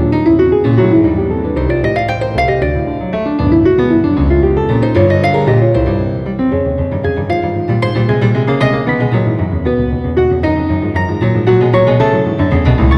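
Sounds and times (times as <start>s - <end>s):
Swiss grand piano from 1860: 0.0s - 12.9s.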